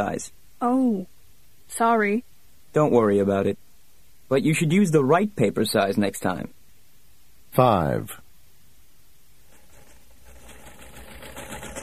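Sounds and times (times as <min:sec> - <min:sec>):
speech: 0:00.0 - 0:03.6, 0:04.3 - 0:06.6, 0:07.5 - 0:08.2
sewing machine running: 0:09.5 - 0:11.8.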